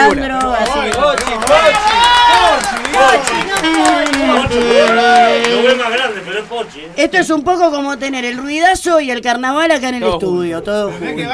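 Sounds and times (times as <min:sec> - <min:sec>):
people cheering: 0:00.0 - 0:08.6
studio applause: 0:00.0 - 0:09.0
speech: 0:00.1 - 0:00.6, 0:06.5 - 0:11.3.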